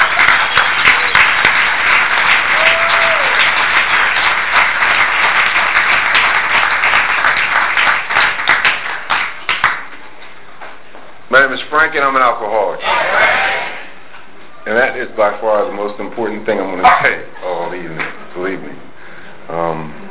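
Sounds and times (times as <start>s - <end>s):
audience applause welcoming a speaker at an evening gathering: 0.0s - 10.0s
speech: 11.3s - 13.3s, 14.7s - 18.9s, 19.5s - 20.0s.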